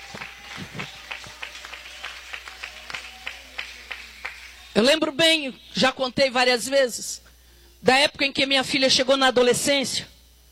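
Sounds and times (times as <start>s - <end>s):
audience clapping in worship: 0.0s - 4.7s
speech: 4.8s - 10.1s.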